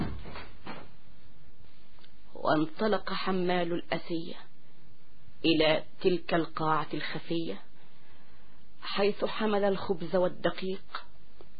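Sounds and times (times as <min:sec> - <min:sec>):
door shutting: 0:00.0 - 0:00.9
speech: 0:02.4 - 0:04.5, 0:05.4 - 0:07.7, 0:08.8 - 0:11.1.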